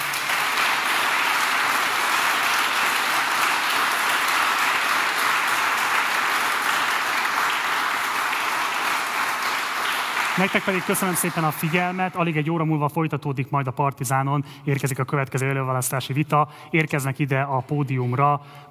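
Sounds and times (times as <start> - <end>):
audience applause: 0.0 - 12.4
speech: 10.4 - 18.6.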